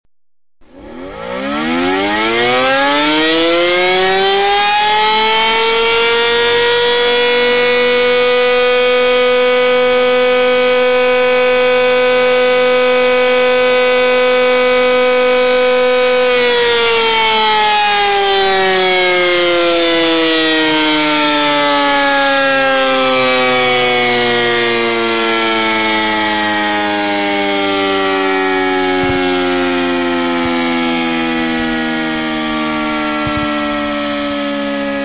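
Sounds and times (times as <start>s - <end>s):
sirens: 0.6s - 35.0s.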